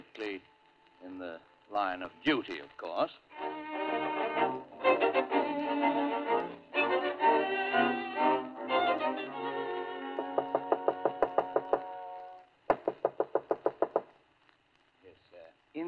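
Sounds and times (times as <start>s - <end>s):
bright tonal music: 1.0s - 12.5s
speech: 1.4s - 3.6s
rapid rapping knock on a door: 10.2s - 11.9s, 12.7s - 14.1s.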